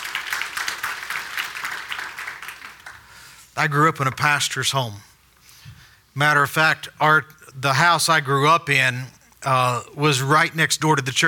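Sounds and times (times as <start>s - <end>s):
audience applauding: 0.0s - 3.4s
speech: 3.6s - 5.1s, 6.2s - 11.2s.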